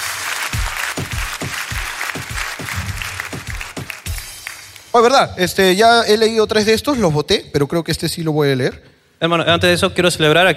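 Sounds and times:
audience applause: 0.0s - 4.9s
speech: 5.0s - 10.5s.

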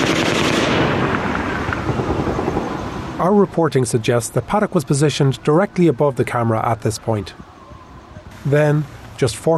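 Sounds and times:
burst of rapid gunfire at the Mandalay: 0.0s - 2.7s
speech: 3.2s - 7.5s, 8.4s - 9.5s.

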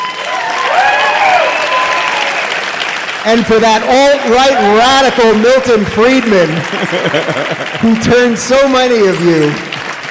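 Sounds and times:
audience applause at a live panel discussion: 0.0s - 10.0s
speech: 3.2s - 9.8s
laughter: 6.5s - 8.4s.

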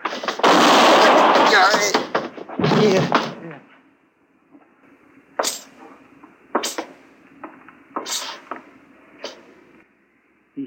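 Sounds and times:
gunshots in a Western radio drama gunfight: 0.0s - 3.4s
person speaking: 1.0s - 3.7s.

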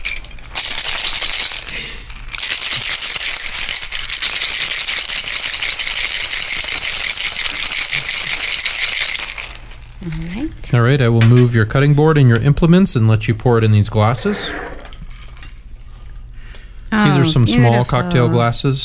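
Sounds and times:
ice cubes rattling in a cocktail shaker: 0.0s - 10.0s
speech: 10.7s - 14.7s, 17.2s - 18.8s.

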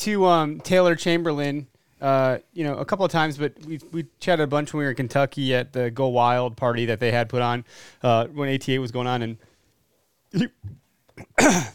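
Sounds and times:
speech: 0.0s - 9.5s, 10.3s - 11.7s
person choking and coughing after wolfing down pizza: 10.3s - 11.7s.

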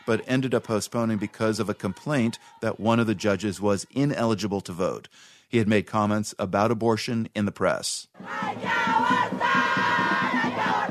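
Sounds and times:
pro-choice demonstrators shouting outside a building: 0.0s - 3.2s, 8.2s - 10.9s
speech: 0.1s - 9.4s.

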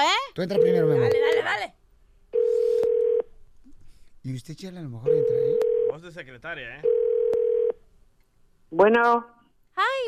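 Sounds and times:
speech: 0.3s - 1.8s, 4.2s - 7.0s, 8.7s - 10.0s
telephone dial tone: 2.4s - 3.2s, 5.2s - 5.9s, 6.9s - 7.7s.

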